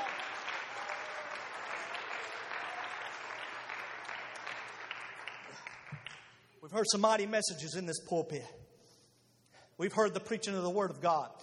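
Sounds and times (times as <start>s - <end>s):
audience clapping hands: 0.0s - 6.5s
speech: 6.6s - 8.6s, 9.8s - 11.4s.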